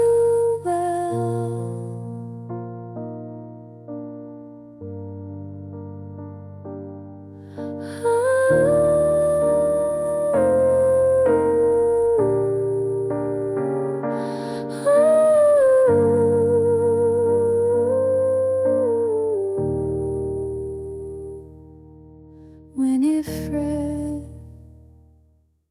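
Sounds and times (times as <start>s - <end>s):
lullaby: 0.0s - 2.4s, 7.6s - 21.9s, 22.6s - 24.5s.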